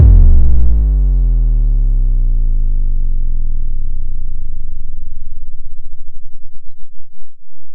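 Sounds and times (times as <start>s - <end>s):
kick drum: 0.0s - 2.6s.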